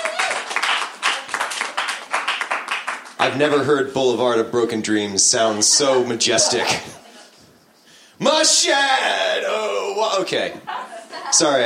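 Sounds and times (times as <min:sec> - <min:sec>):
crowd applauding: 0:00.0 - 0:03.3
speech: 0:03.3 - 0:07.1, 0:08.4 - 0:10.7, 0:11.3 - 0:11.6
laughter: 0:05.5 - 0:07.6, 0:10.4 - 0:11.6.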